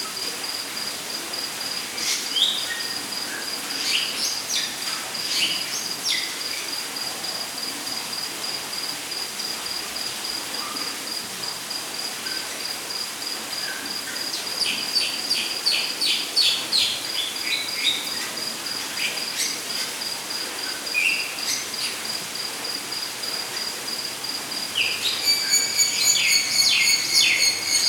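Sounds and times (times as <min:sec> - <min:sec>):
rainforest ambience: 0:00.0 - 0:27.8.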